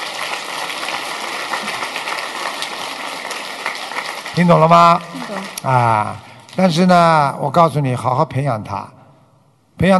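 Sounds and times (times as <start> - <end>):
applause: 0.0 - 6.5
speech: 4.4 - 9.0, 9.8 - 9.9.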